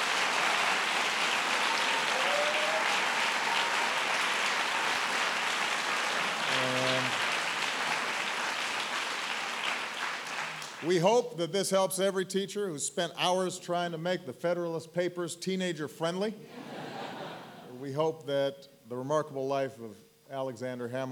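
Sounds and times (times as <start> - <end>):
audience applause: 0.0 - 10.9
speech: 10.8 - 16.6, 17.9 - 21.0
laughter: 16.5 - 17.8.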